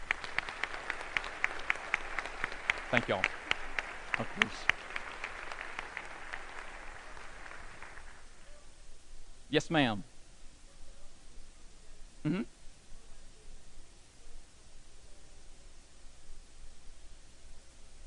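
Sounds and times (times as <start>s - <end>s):
audience applause: 0.0s - 8.4s
speech: 2.9s - 3.4s, 4.2s - 4.7s, 9.5s - 10.1s, 12.2s - 12.6s.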